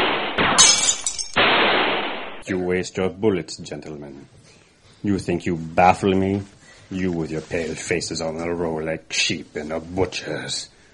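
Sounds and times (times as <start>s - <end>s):
window glass shattering: 0.0s - 2.0s
steady hiss: 1.8s - 10.9s
speech: 2.5s - 10.7s.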